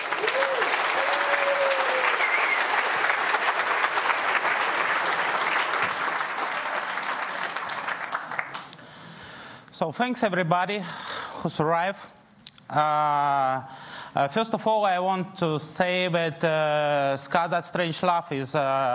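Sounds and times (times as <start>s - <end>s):
audience applause: 0.0s - 8.9s
faint tonal whistles: 2.0s - 2.8s
speech: 9.8s - 18.9s.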